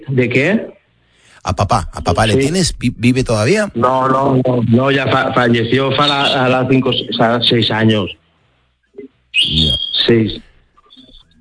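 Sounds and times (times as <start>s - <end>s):
speech: 0.0s - 0.7s, 1.4s - 8.2s, 9.3s - 10.5s
small birds chirping: 9.3s - 10.2s, 10.8s - 11.3s.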